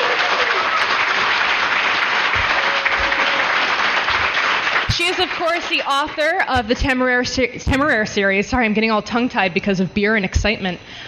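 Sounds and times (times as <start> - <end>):
audience applause: 0.0 - 6.2
speech: 5.1 - 11.0.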